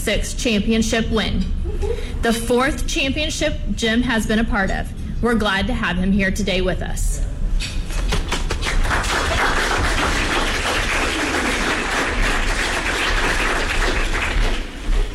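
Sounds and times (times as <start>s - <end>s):
speech: 0.0s - 7.8s
round of applause: 8.2s - 15.1s.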